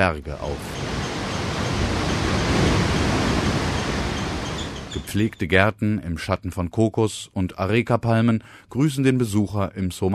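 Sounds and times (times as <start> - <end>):
speech: 0.0 - 0.8, 5.0 - 10.1
sea waves breaking on a beach: 0.4 - 5.1.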